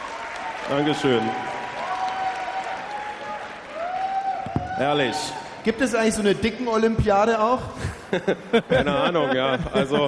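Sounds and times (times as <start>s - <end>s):
audience applause: 0.0s - 5.3s
speech: 0.7s - 1.5s, 4.8s - 10.0s
laughter: 7.5s - 10.0s.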